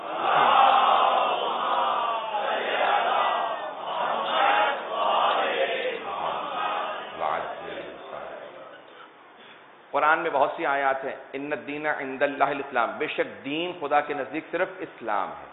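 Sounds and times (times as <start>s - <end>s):
large crowd reciting salawat in unison: 0.0s - 8.8s
speech: 10.2s - 15.5s.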